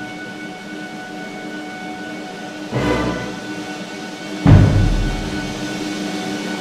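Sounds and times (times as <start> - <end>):
symphonic band playing: 2.7 - 6.5.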